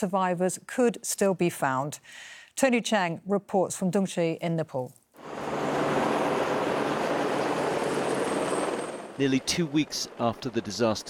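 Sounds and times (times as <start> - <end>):
speech: 0.0 - 5.4, 9.2 - 11.0
wind: 0.0 - 11.0
helicopter hovering in wind: 5.2 - 11.0.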